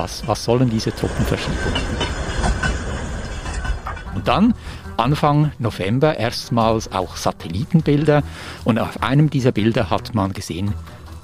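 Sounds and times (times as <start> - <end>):
speech: 0.0 - 2.1, 4.2 - 11.0
train rolling on rails: 0.0 - 5.8.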